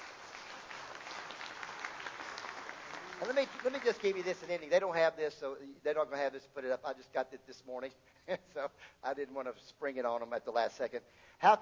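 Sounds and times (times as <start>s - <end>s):
audience clapping: 0.0s - 4.7s
speech: 3.2s - 11.6s.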